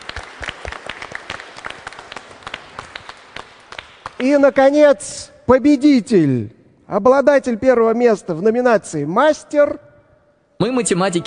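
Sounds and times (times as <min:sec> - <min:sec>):
audience applause: 0:00.0 - 0:04.3
speech: 0:04.2 - 0:09.9, 0:10.6 - 0:11.2.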